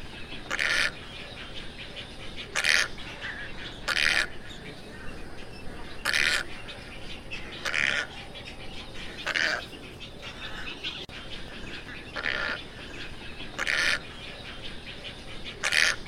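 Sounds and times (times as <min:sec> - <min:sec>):
tricolored heron squawks: 0:00.0 - 0:16.0.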